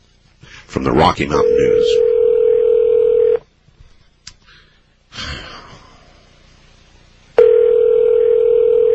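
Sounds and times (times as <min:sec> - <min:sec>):
speech: 0:00.7 - 0:02.1
telephone dial tone on a call to a listeners' hotline: 0:02.0 - 0:03.4, 0:07.4 - 0:08.9.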